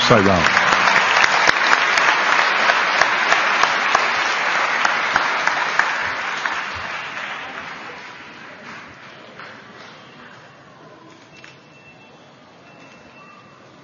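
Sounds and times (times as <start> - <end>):
audience applause: 0.0 - 10.2.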